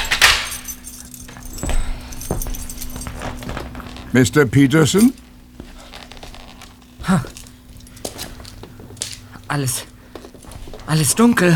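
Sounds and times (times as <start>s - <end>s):
low hum: 0.0s - 11.5s
master key jingling: 0.0s - 11.5s
speech: 4.1s - 5.2s, 7.1s - 7.3s, 9.5s - 9.9s, 10.9s - 11.5s.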